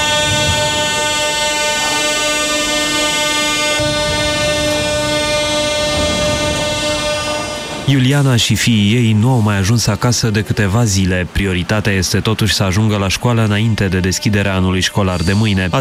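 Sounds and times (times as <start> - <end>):
metro train rumbling through an underground station: 0.0 - 15.7
speech: 7.9 - 15.7.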